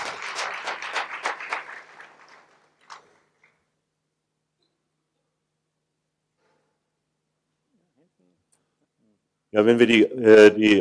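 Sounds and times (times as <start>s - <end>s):
audience applause: 0.0s - 3.3s
speech: 9.5s - 10.7s.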